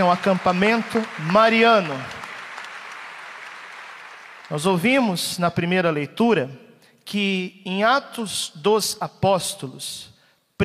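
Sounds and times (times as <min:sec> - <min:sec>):
speech: 0:00.0 - 0:02.2, 0:04.5 - 0:10.6
crowd applauding: 0:00.0 - 0:05.0.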